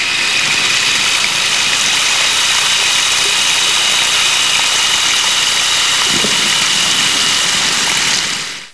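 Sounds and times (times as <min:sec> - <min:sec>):
rain: 0:00.0 - 0:08.7.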